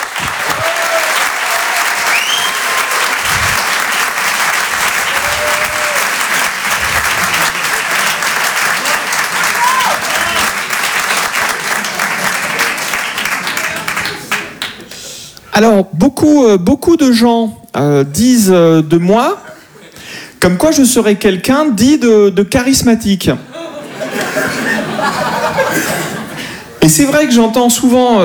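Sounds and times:
audience applauding and cheering for a performer at a live show: 0:00.0 - 0:15.0
laughter: 0:00.0 - 0:15.0, 0:19.4 - 0:20.0, 0:23.4 - 0:26.8
speech: 0:15.6 - 0:19.4, 0:20.4 - 0:23.5, 0:26.9 - 0:28.2.

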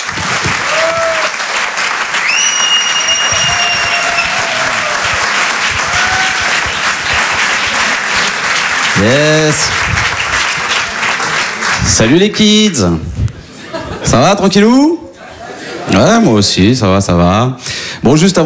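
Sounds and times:
comedy-club audience applause: 0:00.0 - 0:12.4
shrill whistles: 0:02.1 - 0:08.4
speech: 0:09.0 - 0:10.2, 0:11.9 - 0:13.3, 0:14.0 - 0:15.0, 0:15.9 - 0:18.4
laughter: 0:13.4 - 0:16.4.

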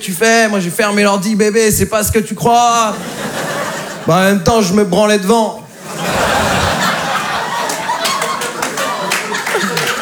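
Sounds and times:
speech: 0:00.0 - 0:03.4, 0:04.0 - 0:05.6
laughter: 0:02.7 - 0:04.4, 0:05.8 - 0:10.0
audience applauding: 0:06.1 - 0:10.0.

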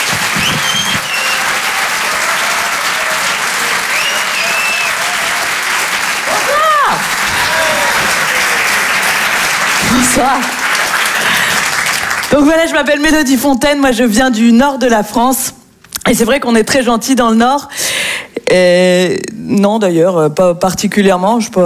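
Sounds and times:
audience shouts at a comedy show: 0:00.0 - 0:10.7
comedy-show audience applause: 0:00.0 - 0:12.5
speech: 0:10.2 - 0:10.6, 0:12.4 - 0:21.6.

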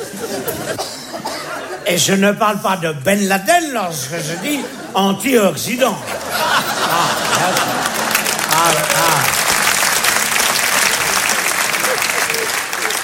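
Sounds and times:
laughter: 0:00.0 - 0:01.9, 0:06.0 - 0:09.3, 0:11.6 - 0:13.0
speech: 0:01.9 - 0:06.2
audience applause: 0:06.2 - 0:13.0.

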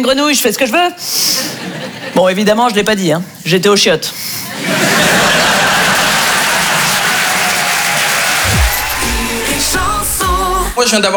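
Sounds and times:
speech: 0:00.0 - 0:04.8, 0:10.8 - 0:11.1
people laughing: 0:01.4 - 0:02.4, 0:04.5 - 0:10.7
crowd applause: 0:04.7 - 0:10.8
people whooping: 0:05.6 - 0:10.8.

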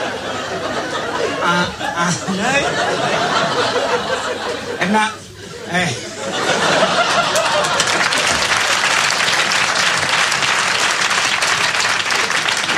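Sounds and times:
laughter: 0:00.0 - 0:10.5
speech: 0:01.5 - 0:06.7
audience applause: 0:06.4 - 0:12.7.

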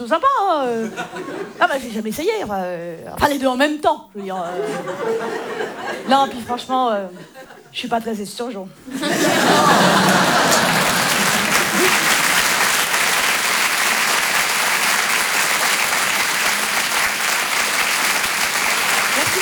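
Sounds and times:
speech: 0:00.0 - 0:10.5
laughter: 0:00.7 - 0:01.6, 0:04.2 - 0:06.3, 0:08.9 - 0:19.4
audience applause: 0:09.0 - 0:19.4.

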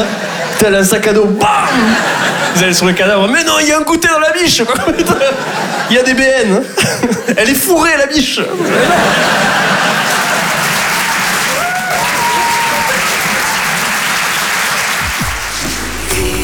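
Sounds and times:
laughter: 0:00.0 - 0:03.3, 0:04.7 - 0:15.3
speech: 0:00.0 - 0:09.8
audience applause: 0:08.5 - 0:16.4.

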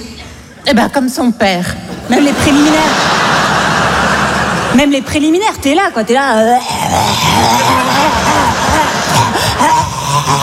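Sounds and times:
speech: 0:00.6 - 0:03.2, 0:04.7 - 0:08.5
laughter: 0:01.9 - 0:05.1, 0:07.4 - 0:10.4
voice imitating a dog gobbling scraps from its bowl: 0:06.4 - 0:10.4.

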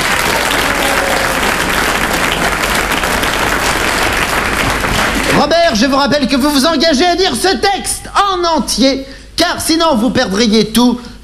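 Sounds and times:
audience applause: 0:00.0 - 0:05.6
speech: 0:05.4 - 0:11.1.

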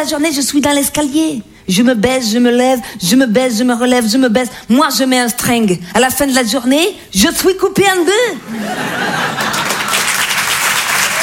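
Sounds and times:
speech: 0:00.0 - 0:09.4
laughter: 0:08.4 - 0:10.3
audience applause: 0:09.0 - 0:11.2.

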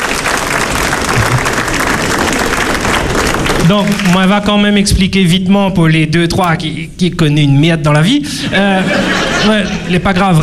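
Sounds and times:
audience applause: 0:00.0 - 0:04.3
laughter: 0:01.1 - 0:01.6, 0:08.4 - 0:10.2
speech: 0:03.7 - 0:10.4.

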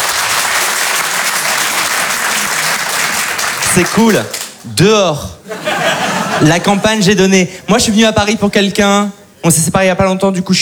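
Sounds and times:
audience clapping: 0:00.0 - 0:04.8
speech: 0:03.8 - 0:10.6
laughter: 0:05.4 - 0:07.2.

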